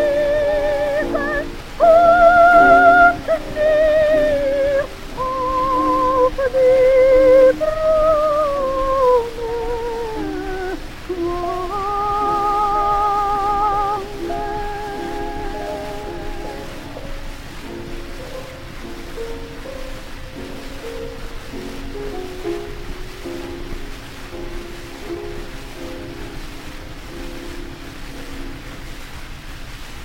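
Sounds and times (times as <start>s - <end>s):
gramophone playing: 0.0s - 23.4s.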